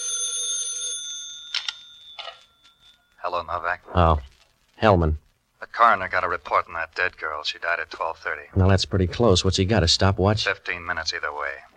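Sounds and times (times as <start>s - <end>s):
telephone ringing: 0.0s - 3.2s
speech: 3.2s - 11.7s.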